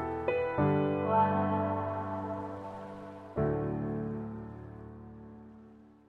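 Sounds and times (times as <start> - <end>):
karaoke backing track: 0.2 - 4.2.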